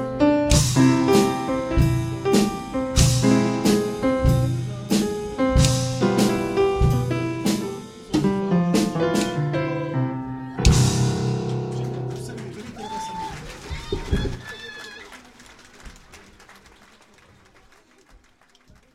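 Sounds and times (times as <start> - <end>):
blues music: 0.0 - 14.6.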